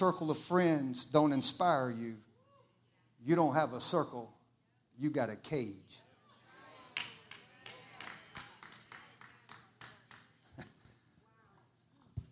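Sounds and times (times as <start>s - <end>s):
speech: 0.0s - 2.3s, 3.2s - 4.4s, 5.0s - 6.0s
single person clapping: 7.0s - 10.8s.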